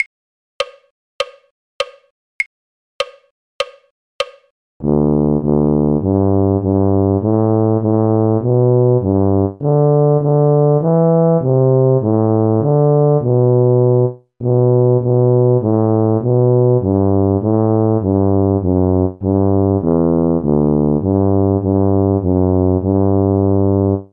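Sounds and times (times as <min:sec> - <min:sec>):
tuba: 0:04.8 - 0:24.1.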